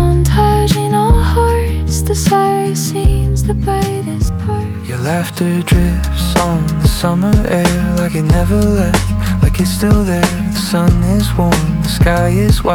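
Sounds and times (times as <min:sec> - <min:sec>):
acoustic indie music: 0:00.0 - 0:12.7.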